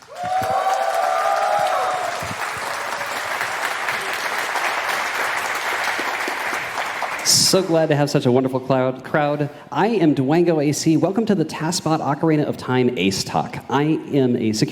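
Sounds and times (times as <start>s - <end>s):
audience applause: 0.0s - 7.6s
speech: 7.3s - 14.6s.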